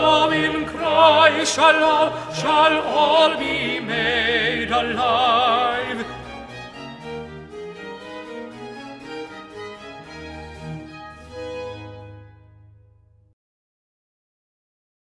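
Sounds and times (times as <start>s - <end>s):
tenors singing: 0.0s - 8.7s.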